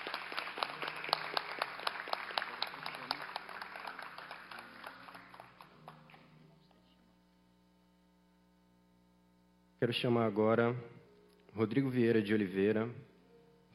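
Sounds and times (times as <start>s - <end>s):
audience applause: 0.0s - 6.3s
speech: 9.8s - 11.0s, 11.6s - 13.1s.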